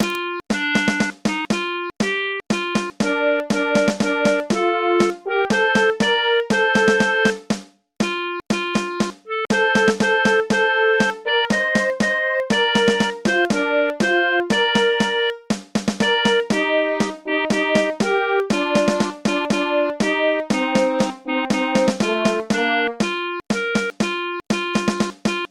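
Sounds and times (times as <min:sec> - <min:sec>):
national anthem in MIDI: 0:00.0 - 0:25.4.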